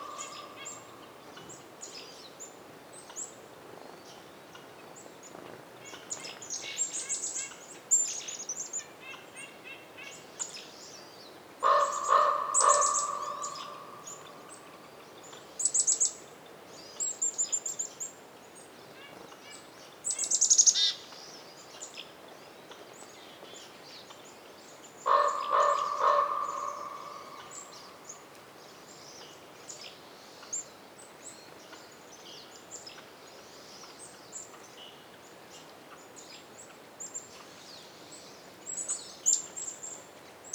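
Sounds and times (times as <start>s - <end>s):
raven calls reverberating in a winter forest in Canada: 0.0s - 1.3s, 11.6s - 15.0s, 25.0s - 28.6s
other birds chirping in a winter forest in Canada: 0.0s - 1.6s, 11.6s - 15.4s, 25.0s - 28.3s
wind in a winter forest in Canada: 0.0s - 40.5s.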